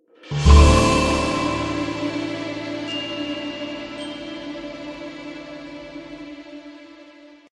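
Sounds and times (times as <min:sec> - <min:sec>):
fanfare: 0:00.3 - 0:06.1.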